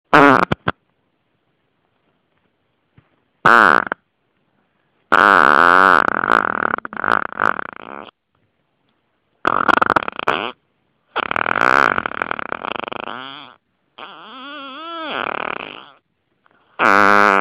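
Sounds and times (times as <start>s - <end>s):
fart: 0.1s - 0.8s, 3.4s - 4.0s, 5.1s - 8.2s, 9.4s - 16.0s, 16.6s - 17.4s.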